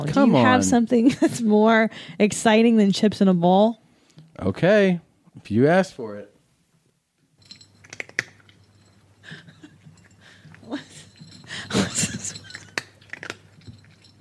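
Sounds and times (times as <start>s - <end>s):
speech: 0.0s - 3.8s, 4.4s - 6.3s
cat crunching dry kibble: 7.7s - 8.6s, 12.3s - 14.2s.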